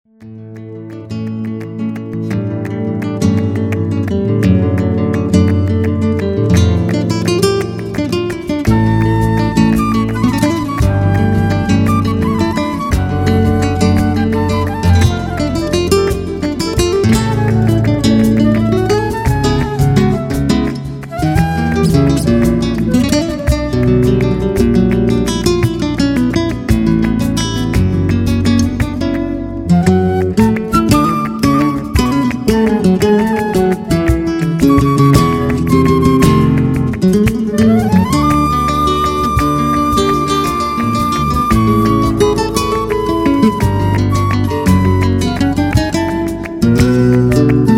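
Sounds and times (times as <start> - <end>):
flamenco music: 0.2 - 47.7.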